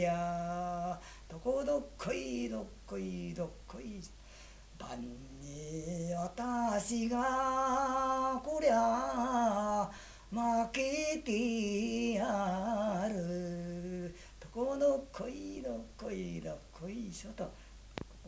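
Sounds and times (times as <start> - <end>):
person singing a sumo jinku entertainment song in Tateyama: 0.0 - 18.2.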